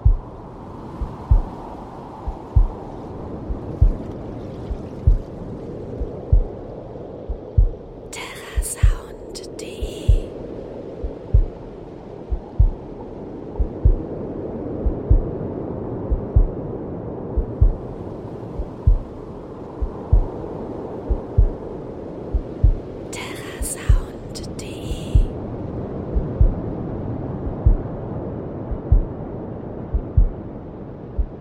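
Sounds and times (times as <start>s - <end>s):
heartbeat: 0.0s - 0.3s, 1.0s - 1.6s, 2.2s - 2.8s, 3.5s - 4.0s, 4.7s - 5.3s, 6.0s - 6.6s, 7.2s - 7.8s, 8.4s - 9.2s, 9.8s - 10.3s, 11.0s - 11.6s, 12.3s - 12.8s, 13.6s - 14.1s, 14.8s - 15.3s, 16.0s - 16.6s, 17.4s - 17.9s, 18.6s - 19.2s, 19.8s - 20.4s, 21.1s - 21.6s, 22.3s - 22.8s, 23.6s - 24.2s, 24.9s - 25.4s, 26.1s - 26.6s, 27.4s - 27.9s, 28.7s - 29.1s, 29.9s - 30.4s, 31.2s - 31.4s
waves: 0.0s - 31.4s.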